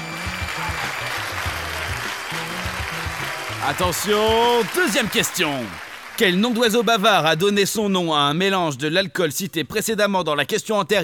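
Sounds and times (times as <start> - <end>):
crowd applause: 0.0 - 7.9
speech: 3.6 - 11.0.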